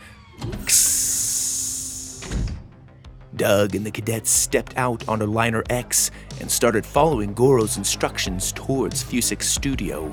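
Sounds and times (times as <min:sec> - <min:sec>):
exit door hissing open: 0:00.6 - 0:02.6
speech: 0:03.4 - 0:10.1.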